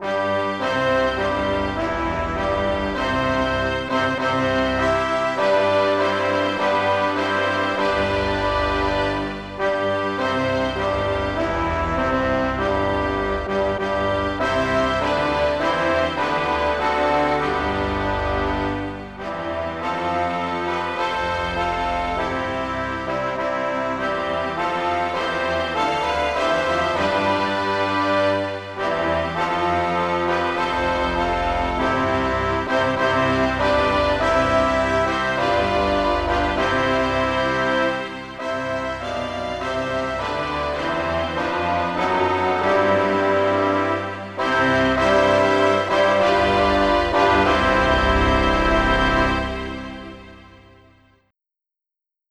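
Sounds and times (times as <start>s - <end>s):
brass instruments: 0.0s - 51.2s.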